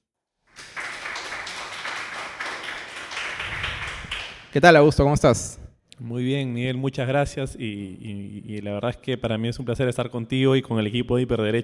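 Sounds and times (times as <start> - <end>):
audience applause: 0.5 - 4.5
speech: 4.5 - 11.6.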